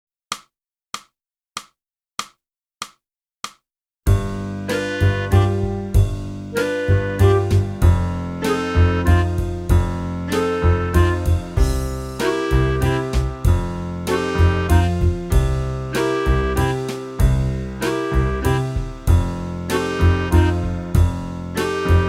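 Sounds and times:
flute: 4.7s - 5.9s, 6.5s - 22.0s.

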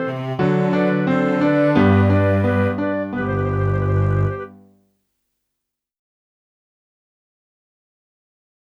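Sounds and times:
flute: 0.0s - 4.6s.

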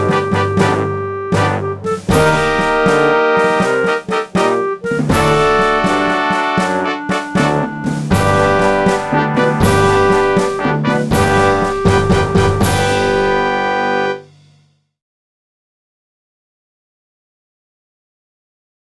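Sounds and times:
clarinet: 0.0s - 14.3s.

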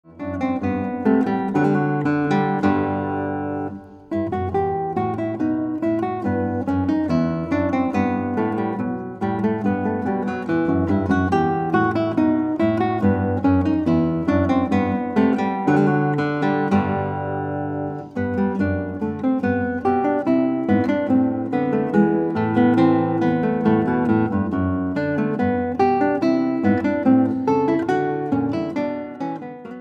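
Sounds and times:
guitar: 0.0s - 29.7s.

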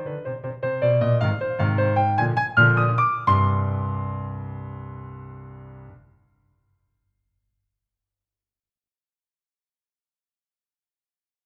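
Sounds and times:
piano: 0.0s - 6.2s.

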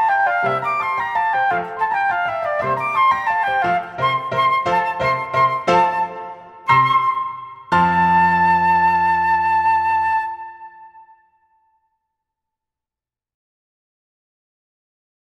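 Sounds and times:
full flute playing: 0.0s - 11.5s.

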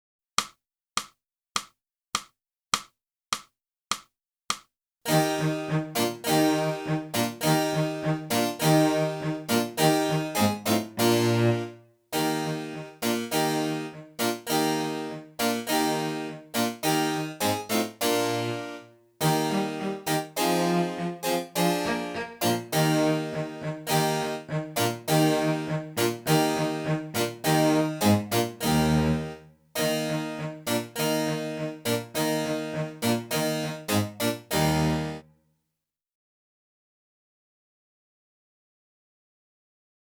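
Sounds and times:
clarinet: 5.1s - 35.2s.

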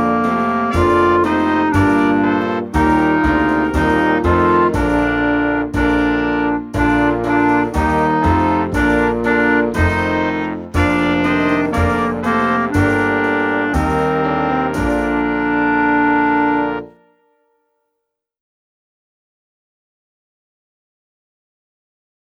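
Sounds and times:
clarinet: 0.0s - 17.4s.

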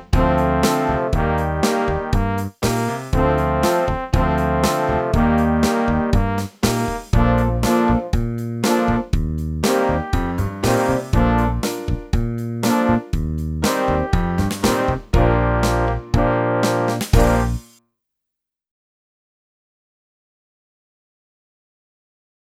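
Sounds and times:
clarinet: 0.0s - 12.0s, 12.6s - 17.8s.

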